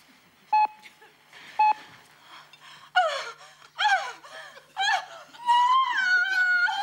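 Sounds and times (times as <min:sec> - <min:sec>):
short electronic beeps: 0:01.6 - 0:01.8
woman performing lustful panting and moaning: 0:02.2 - 0:06.8.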